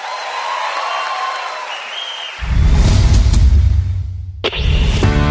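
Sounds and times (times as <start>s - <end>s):
audience applause: 0.0s - 2.5s
brief swoosh: 2.4s - 5.2s.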